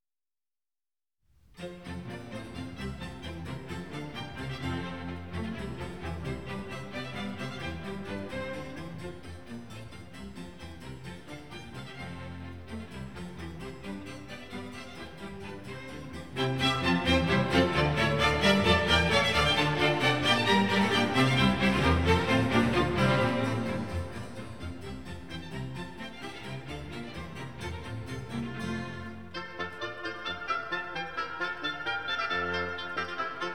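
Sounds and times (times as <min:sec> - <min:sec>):
baroque orchestral suite in D major: 0:01.6 - 0:33.5.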